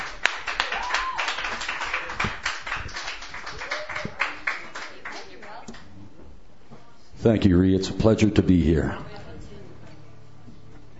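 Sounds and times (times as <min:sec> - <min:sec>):
audience applause at a Sunday night open mic: 0:00.0 - 0:05.6
speech: 0:07.2 - 0:09.1.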